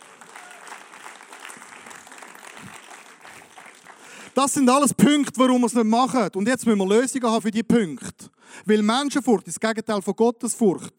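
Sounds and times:
audience applause: 0:00.0 - 0:04.4
speech: 0:04.4 - 0:08.1, 0:08.7 - 0:10.9.

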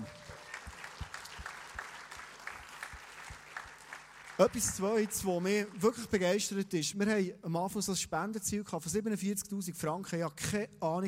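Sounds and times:
audience applause: 0:00.0 - 0:06.2
speech: 0:04.4 - 0:11.0.

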